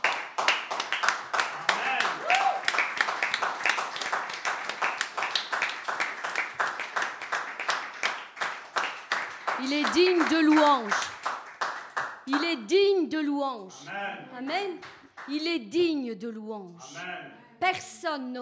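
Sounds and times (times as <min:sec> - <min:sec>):
audience clapping and ovation: 0:00.0 - 0:12.7, 0:14.6 - 0:15.5
speech: 0:09.7 - 0:11.1, 0:12.3 - 0:18.4.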